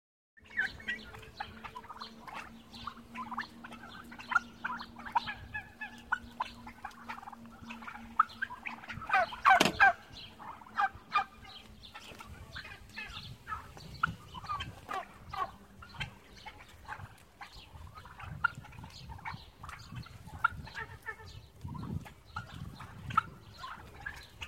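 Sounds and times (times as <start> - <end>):
low steady hum: 0.4 - 18.2
domestic turkeys calling in a flock: 0.4 - 24.4.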